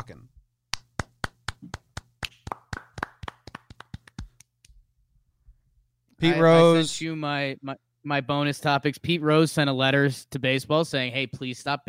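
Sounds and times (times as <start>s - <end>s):
speech: 0.1s - 0.4s, 6.2s - 11.8s
hand clapping: 0.7s - 4.8s.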